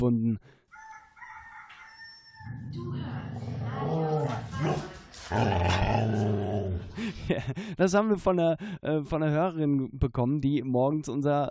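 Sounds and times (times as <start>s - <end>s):
speech: 0.0s - 0.5s, 7.3s - 11.4s
rooster crowing: 0.7s - 2.6s
dog growling aggressively: 2.7s - 7.0s
laughter: 6.9s - 7.8s.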